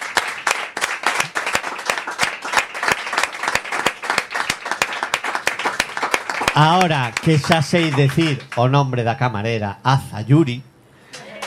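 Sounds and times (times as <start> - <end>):
audience applause: 0.0 - 8.8, 11.2 - 11.4
speech: 6.6 - 10.7.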